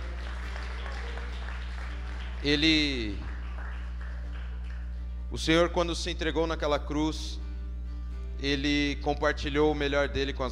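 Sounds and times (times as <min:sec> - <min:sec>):
audience applauding: 0:00.0 - 0:05.0
speech: 0:02.4 - 0:03.3, 0:05.3 - 0:07.4, 0:08.4 - 0:10.5.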